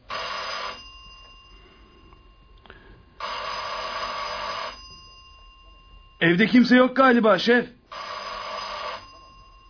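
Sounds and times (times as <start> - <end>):
doorbell ringing: 0.0 - 6.8, 7.9 - 9.6
speech: 6.2 - 7.8.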